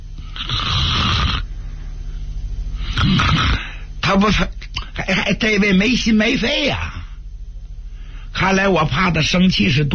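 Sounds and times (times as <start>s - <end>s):
person imitating snoring as if asleep leaning back in a chair: 0.2s - 1.5s, 2.8s - 3.9s
speech: 4.1s - 7.0s, 8.4s - 9.9s.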